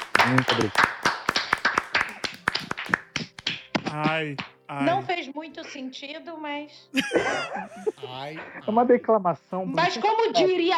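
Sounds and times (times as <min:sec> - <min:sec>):
hand clapping applause: 0:00.0 - 0:05.1
laughter: 0:00.2 - 0:00.8, 0:07.0 - 0:09.0
speech: 0:00.3 - 0:00.9, 0:03.9 - 0:10.7.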